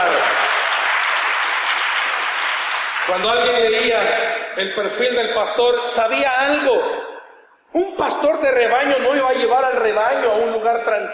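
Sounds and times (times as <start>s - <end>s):
applause from audience: 0.0s - 4.0s
speech: 3.1s - 7.1s, 7.7s - 11.1s.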